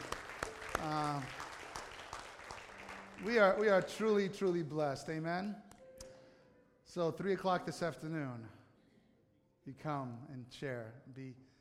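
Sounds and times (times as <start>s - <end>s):
crowd clapping in a hall: 0.0s - 4.7s
speech: 0.8s - 1.4s, 3.2s - 5.7s, 6.9s - 8.6s, 9.6s - 11.5s.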